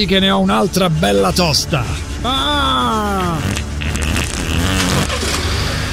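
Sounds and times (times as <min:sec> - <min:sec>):
speech: 0:00.0 - 0:03.0
engine cranking and starting: 0:04.2 - 0:05.9.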